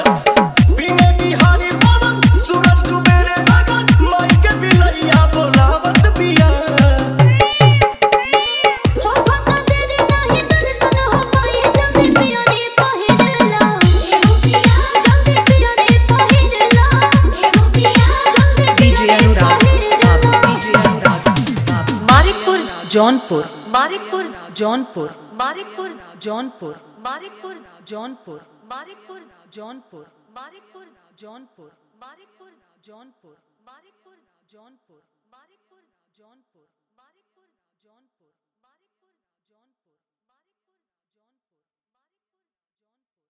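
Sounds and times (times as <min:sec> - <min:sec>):
Bhojpuri Chhath folk song mix: 0:00.0 - 0:26.0.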